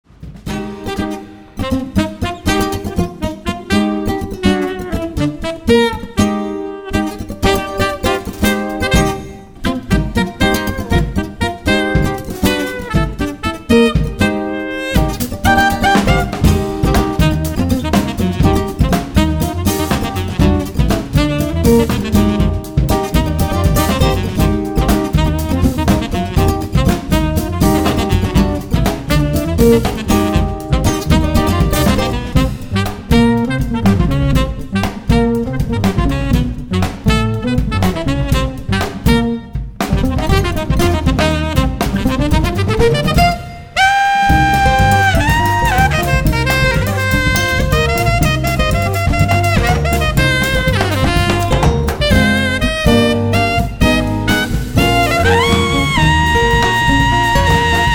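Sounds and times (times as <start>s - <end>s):
samba music: 0.1s - 57.9s.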